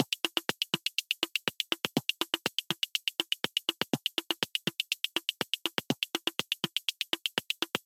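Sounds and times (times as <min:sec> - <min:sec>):
122 BPM micro drums: 0:00.0 - 0:07.8.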